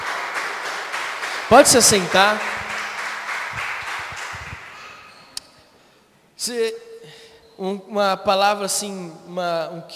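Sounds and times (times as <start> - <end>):
audience applause: 0.0 - 5.1
speech: 1.5 - 2.6, 6.4 - 6.9, 7.6 - 9.9.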